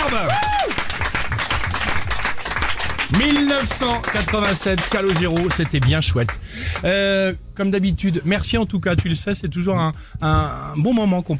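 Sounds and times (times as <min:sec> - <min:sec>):
audience applauding and cheering for a guest: 0:00.0 - 0:06.9
speech: 0:03.1 - 0:11.3.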